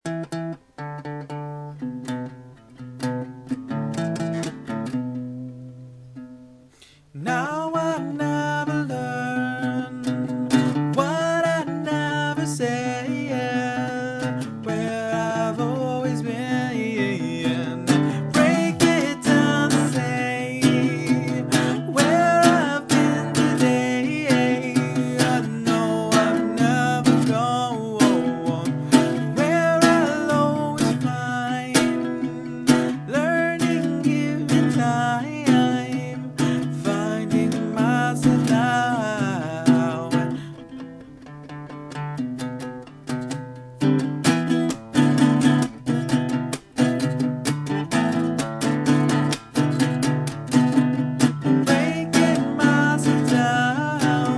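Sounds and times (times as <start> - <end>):
guitar: 0.0 - 54.3.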